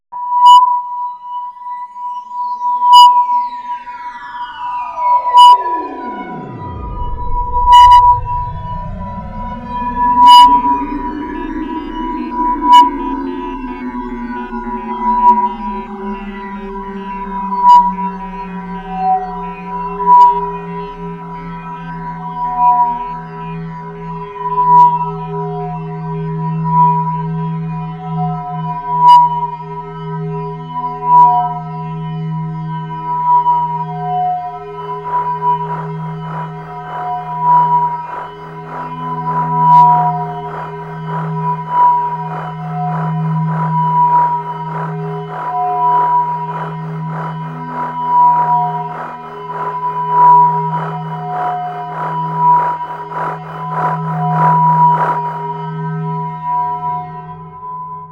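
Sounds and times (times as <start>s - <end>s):
sine wave tone: 0.2s - 29.6s, 30.5s - 57.2s.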